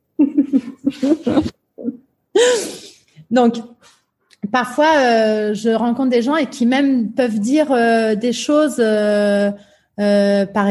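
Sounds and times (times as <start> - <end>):
speech: 0.5 - 1.6, 3.3 - 10.7
person coughing: 0.6 - 3.0.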